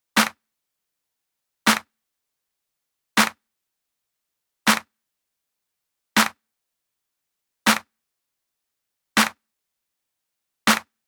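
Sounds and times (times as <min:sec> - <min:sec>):
hand clap: 0:00.2 - 0:00.4, 0:01.7 - 0:01.9, 0:04.7 - 0:04.9, 0:07.7 - 0:07.9, 0:10.7 - 0:10.9.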